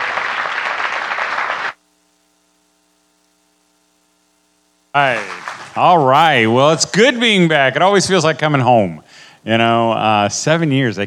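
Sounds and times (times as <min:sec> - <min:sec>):
audience applause greeting a speaker coming on stage: 0:00.0 - 0:01.8, 0:05.0 - 0:06.0
speech: 0:05.0 - 0:11.0.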